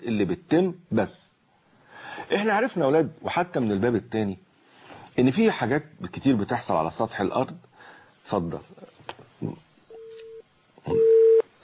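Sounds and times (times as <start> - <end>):
speech: 0.0 - 1.2, 2.3 - 4.5, 5.2 - 7.7, 8.3 - 9.6
busy tone of a cut-off phone call: 9.9 - 11.4.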